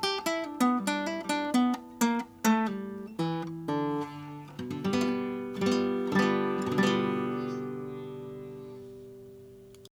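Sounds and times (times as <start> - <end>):
1958 Martin 00-18G natural nylon-string classical guitar playing: 0.0 - 9.9.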